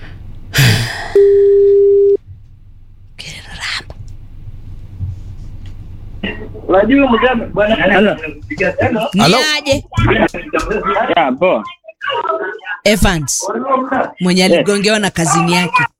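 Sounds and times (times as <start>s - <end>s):
phone line tone as a call is placed: 1.2s - 2.2s
speech: 6.7s - 15.9s.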